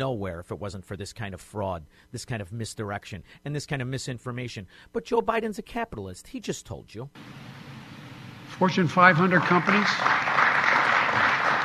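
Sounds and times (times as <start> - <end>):
speech: 0.0 - 7.7, 8.5 - 10.4
audience clapping: 8.6 - 11.6.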